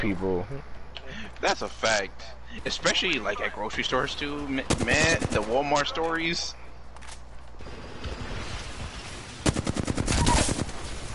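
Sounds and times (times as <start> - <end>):
speech: 0.0 - 7.1
video game gunfire: 4.6 - 5.6, 9.4 - 11.1.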